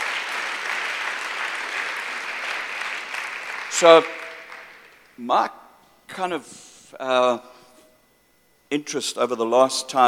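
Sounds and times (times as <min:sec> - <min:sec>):
audience applause: 0:00.0 - 0:05.1
speech: 0:03.8 - 0:04.2, 0:05.2 - 0:07.5, 0:08.7 - 0:10.0.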